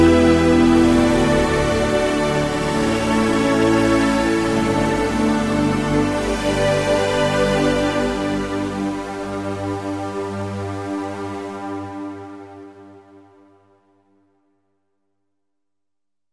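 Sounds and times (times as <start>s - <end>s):
lush Yamaha SY99 synth pad: 0.0s - 11.4s.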